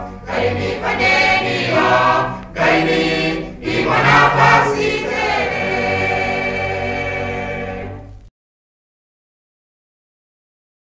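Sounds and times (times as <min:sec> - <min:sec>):
choir singing: 0:00.0 - 0:08.2.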